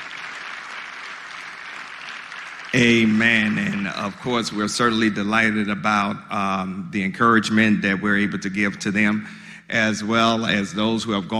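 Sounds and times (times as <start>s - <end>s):
round of applause: 0.0s - 4.2s
speech: 2.7s - 11.3s.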